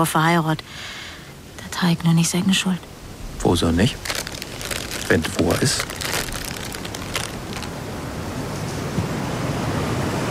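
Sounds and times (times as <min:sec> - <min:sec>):
speech: 0:00.0 - 0:01.0, 0:01.8 - 0:04.2, 0:05.1 - 0:05.9
storm wind: 0:02.8 - 0:10.2.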